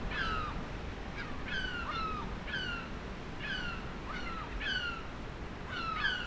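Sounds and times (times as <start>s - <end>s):
gull calls: 0.1s - 0.6s, 1.1s - 5.1s, 5.7s - 6.2s.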